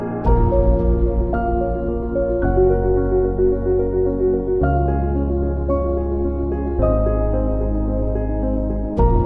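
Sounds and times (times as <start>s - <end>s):
motivational background music: 0.2s - 9.2s.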